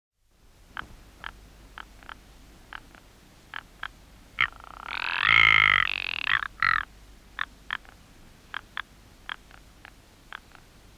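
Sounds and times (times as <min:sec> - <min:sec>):
ptarmigan harsh croaking calls: 0:01.2 - 0:07.9.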